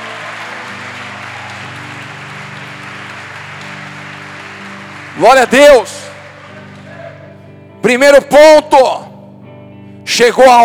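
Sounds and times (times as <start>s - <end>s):
audience applauding: 0.0s - 7.5s
speech: 5.2s - 6.0s, 7.8s - 9.0s, 10.1s - 10.6s.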